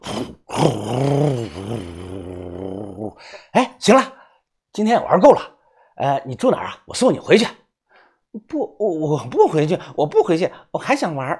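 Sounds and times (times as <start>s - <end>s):
voice imitating a motorcycle engine kick-started and revving: 0.0s - 3.2s
speech: 3.6s - 4.1s, 4.8s - 7.6s, 8.3s - 11.3s.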